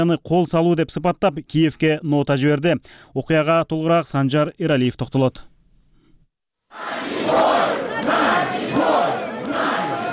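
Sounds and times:
speech: 0.0s - 5.5s
protesters chanting outside the Russian embassy in Kyiv: 6.7s - 10.1s.

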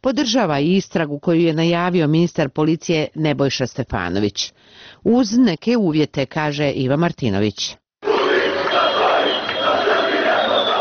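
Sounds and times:
speech: 0.0s - 7.8s
football fans chanting after the Armenia versus Albania national team match: 8.0s - 10.8s.

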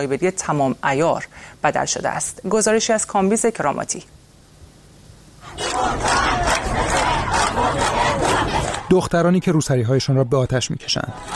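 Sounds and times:
speech: 0.0s - 4.2s, 8.9s - 11.3s
angry protest crowd shouting in streets: 5.4s - 8.9s, 11.0s - 11.3s.

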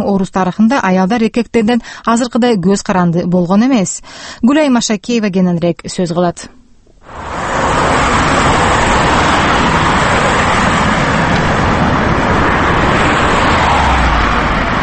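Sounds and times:
speech: 0.0s - 7.6s
car traffic whizzing along a Moscow street: 6.9s - 14.8s.

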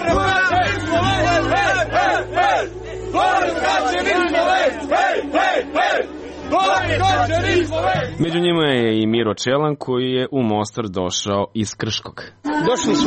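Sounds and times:
Slovenian fans chanting and cheering at a high-diving event in Mostar: 0.0s - 8.4s
speech: 3.9s - 13.0s.

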